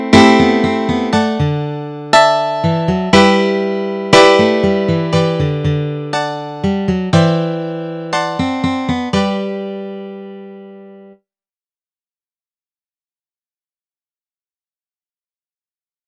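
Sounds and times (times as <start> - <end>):
guitar melody and chords: 0.0 - 11.2.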